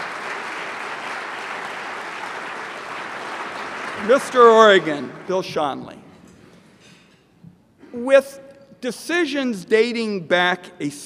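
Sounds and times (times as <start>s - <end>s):
audience applause: 0.0s - 5.7s
speech: 4.0s - 6.0s, 7.9s - 11.0s.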